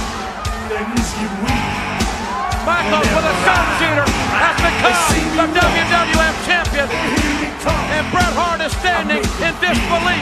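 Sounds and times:
wrestling arena crowd cheering and yelling: 0.0 - 10.2
speech: 0.7 - 1.8, 2.6 - 10.2
laughter: 2.6 - 10.2.

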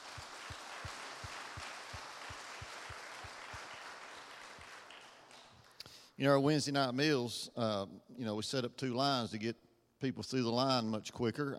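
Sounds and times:
sustained audience applause: 0.0 - 5.8
louder regularly spaced claps in a quick even rhythm: 0.0 - 6.1
speech: 6.2 - 11.5.

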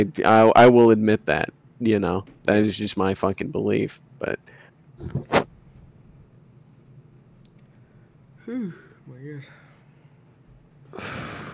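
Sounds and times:
speech: 0.0 - 5.4, 8.5 - 9.6, 11.0 - 11.5
person yawning: 8.4 - 9.7.

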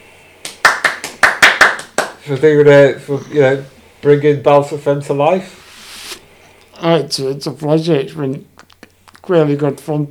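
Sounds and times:
hand claps: 0.4 - 2.2
speech: 2.3 - 5.6, 6.8 - 8.6, 9.3 - 10.0.

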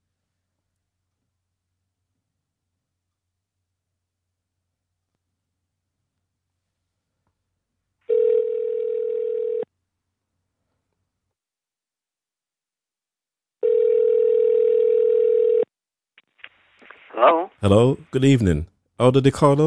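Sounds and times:
telephone ring tones through the line: 8.1 - 9.7, 13.6 - 15.7
speech: 17.2 - 19.6.

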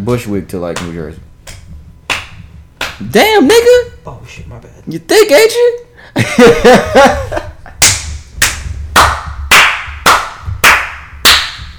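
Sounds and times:
speech: 0.0 - 1.3, 3.0 - 7.5
hand slapping a leg: 0.8 - 3.0, 7.8 - 11.7
people laughing: 6.2 - 7.8.

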